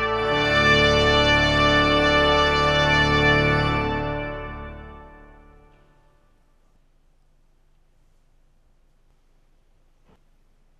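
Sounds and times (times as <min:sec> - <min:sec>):
march music: 0:00.0 - 0:06.4.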